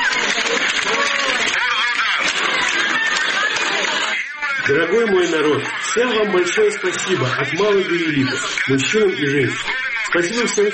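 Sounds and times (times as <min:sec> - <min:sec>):
large crowd clapping in a square: 0:00.0 - 0:04.3
laughter: 0:00.0 - 0:10.5
crowd cheering: 0:00.0 - 0:10.7
speech: 0:04.7 - 0:10.7.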